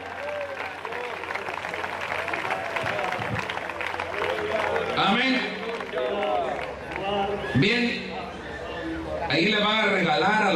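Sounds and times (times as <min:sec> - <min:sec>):
audience applauding: 0:00.0 - 0:07.4
faint voices and cheers: 0:00.0 - 0:10.5
speech: 0:07.6 - 0:08.0.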